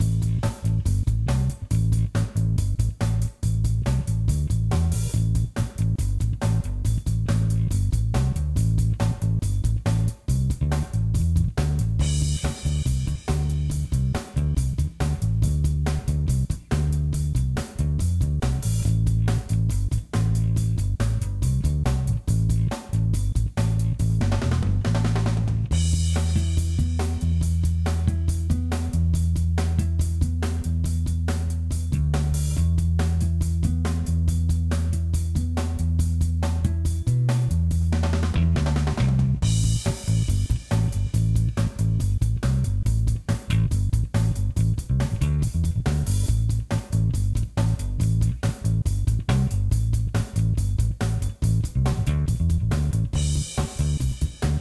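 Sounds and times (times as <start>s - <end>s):
music: 0.0s - 54.6s.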